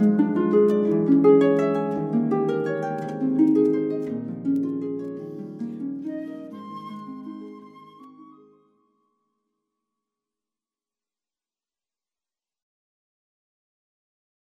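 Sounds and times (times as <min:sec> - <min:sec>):
harp: 0:00.0 - 0:09.5
flute: 0:05.8 - 0:09.5.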